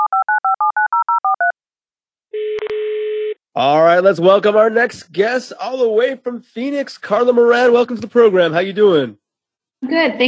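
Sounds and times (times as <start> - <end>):
telephone dial tone: 0.0 - 1.6, 2.4 - 3.4
touch-tone dialing beeps: 0.0 - 1.6
speech: 3.6 - 9.2, 9.8 - 10.2.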